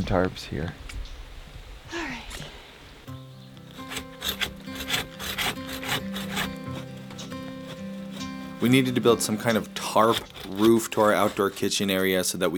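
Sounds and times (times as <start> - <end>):
speech: 0.0 - 0.9, 8.6 - 12.5
handsaw cutting small pine trees: 3.7 - 12.2.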